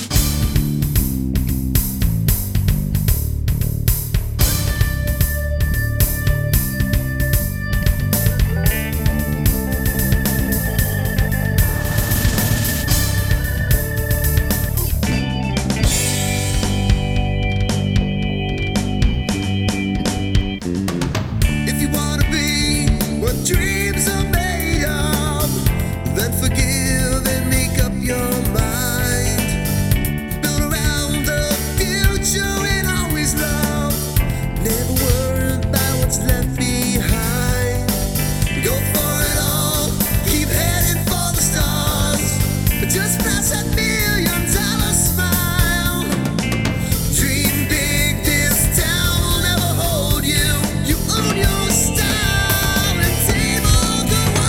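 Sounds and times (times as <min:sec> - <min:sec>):
keyboard bass: 0:00.1 - 0:54.4.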